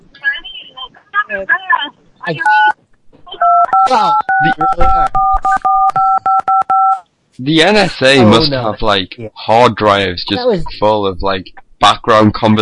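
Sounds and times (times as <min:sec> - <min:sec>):
speech: 0:01.3 - 0:02.8, 0:03.9 - 0:05.3, 0:07.4 - 0:12.6
telephone keypad dial tone beeps: 0:03.4 - 0:07.0.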